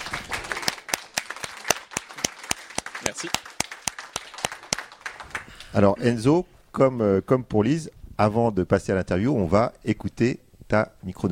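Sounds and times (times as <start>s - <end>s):
audience applause: 0.0s - 5.8s
speech: 3.1s - 3.4s, 5.7s - 11.3s.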